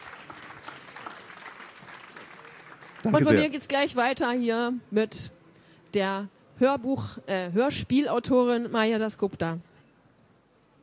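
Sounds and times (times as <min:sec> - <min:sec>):
audience applause: 0:00.0 - 0:03.5
speech: 0:03.0 - 0:05.4, 0:06.0 - 0:09.7.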